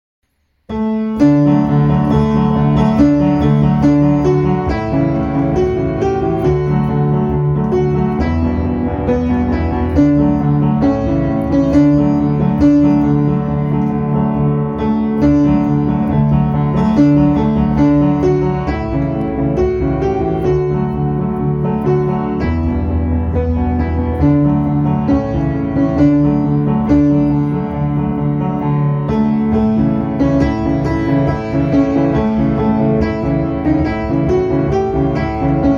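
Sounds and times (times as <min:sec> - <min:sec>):
instrumental music: 0:00.2 - 0:35.7.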